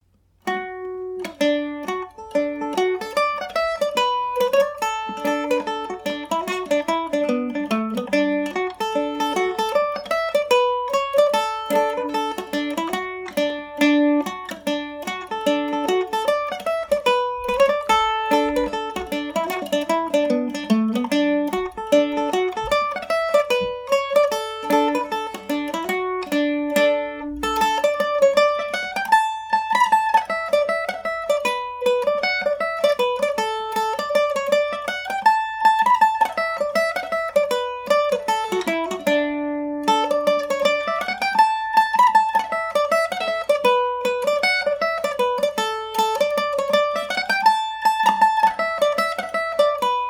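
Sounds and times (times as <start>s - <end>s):
Irish mandolin in D major: 0.0s - 50.0s.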